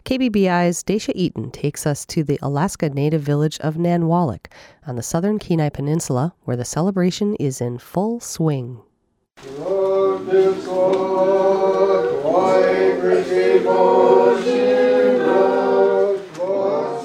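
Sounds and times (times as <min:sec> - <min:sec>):
speech: 0:00.1 - 0:09.7, 0:10.3 - 0:15.6
congregation singing Orthodox Christmas hymns at St. Sergis and Herman Church, Nanwalik, Alaska: 0:09.4 - 0:17.0.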